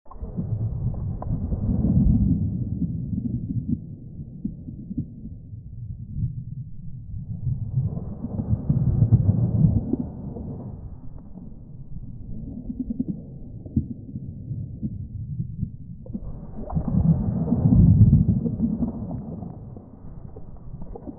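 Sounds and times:
deep sea noise: 0.1 - 21.1
marine life: 0.1 - 21.1.

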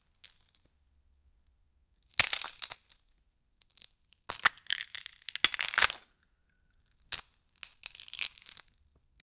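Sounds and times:
bones breaking, injury: 2.2 - 2.9, 4.3 - 6.1, 7.1 - 8.7.

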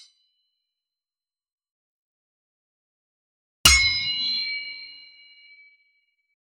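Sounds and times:
sword hit: 3.7 - 5.2.

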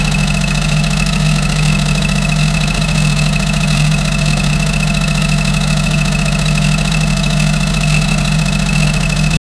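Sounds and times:
race car: 0.0 - 9.4.

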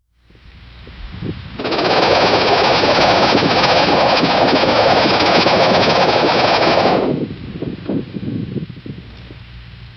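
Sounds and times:
desperate throbbing sound: 0.6 - 7.8.

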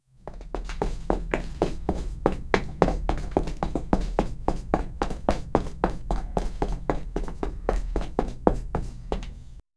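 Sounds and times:
people walking towards, footsteps: 0.2 - 9.6.

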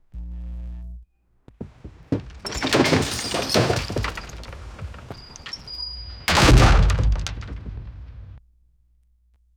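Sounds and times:
wood sound: 1.6 - 8.4.

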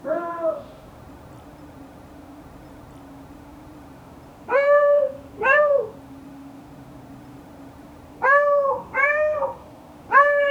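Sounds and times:
cat: 4.5 - 6.0, 8.2 - 10.4.

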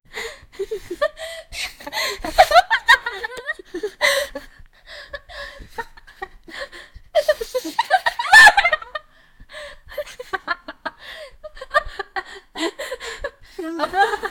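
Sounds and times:
white teen girls chuckling: 0.6 - 4.5, 7.2 - 9.0, 9.9 - 14.3.

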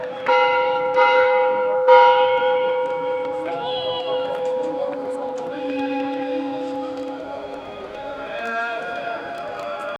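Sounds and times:
temple bells: 0.0 - 9.9
shankh conch shell blowing with echo: 2.9 - 9.4.

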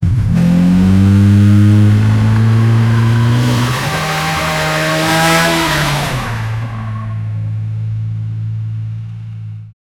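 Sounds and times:
1967 Ford Mustang speeding: 0.0 - 7.8.

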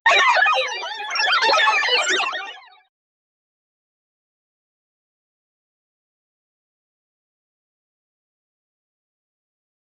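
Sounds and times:
funny cartoon sound effects: 0.1 - 2.8.

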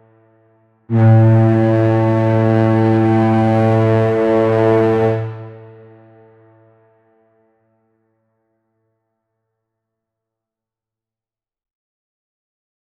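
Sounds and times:
menacing medieval brass war horn blast: 0.9 - 6.2.

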